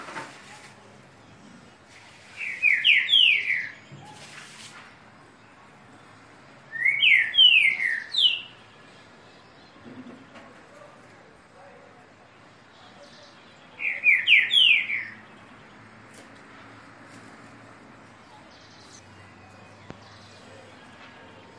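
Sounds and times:
green-winged saltator singing downslurred whistles: 0:02.4 - 0:03.9, 0:06.7 - 0:08.6, 0:13.8 - 0:15.2.

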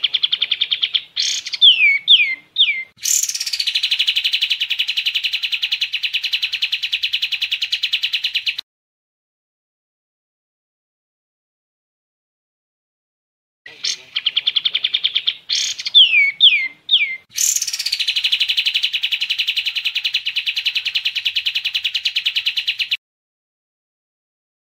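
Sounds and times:
sooty-headed bulbul song: 0:00.0 - 0:08.6, 0:13.7 - 0:23.0.

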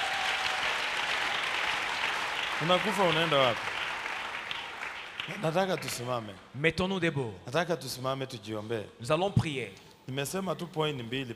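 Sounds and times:
church congregation applauding during a Christian sermon: 0:00.0 - 0:06.2
speech: 0:02.6 - 0:03.8, 0:05.3 - 0:11.3.

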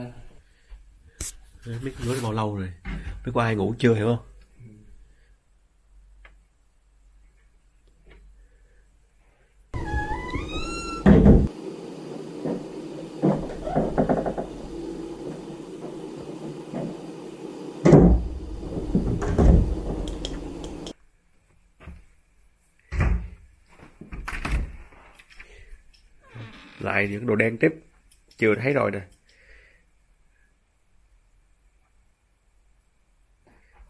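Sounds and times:
speech: 0:01.2 - 0:04.3, 0:27.0 - 0:29.2
cabinet door creaking in the Sallie House: 0:09.8 - 0:11.5, 0:12.4 - 0:17.2, 0:17.8 - 0:20.8
hollow thuds and knocks: 0:09.8 - 0:20.8.

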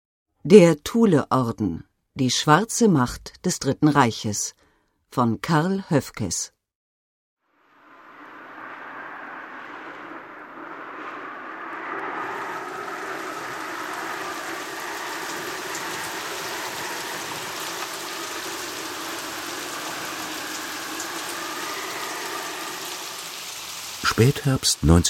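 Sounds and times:
speech: 0:00.4 - 0:06.5, 0:24.2 - 0:25.0
heavy rain lashing down over battlefields: 0:07.5 - 0:25.0.

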